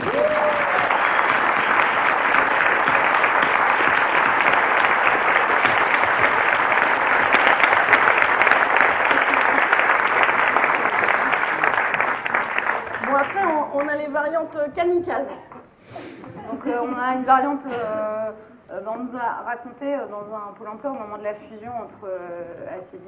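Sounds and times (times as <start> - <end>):
audience applauding a school principal: 0.0 - 14.0
speech: 14.8 - 15.5, 17.0 - 23.0.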